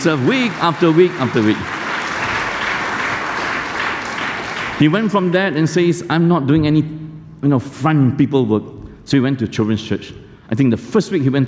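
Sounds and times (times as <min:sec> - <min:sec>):
speech: 0:00.0 - 0:01.8, 0:04.8 - 0:11.4
crowd clapping: 0:00.0 - 0:05.4.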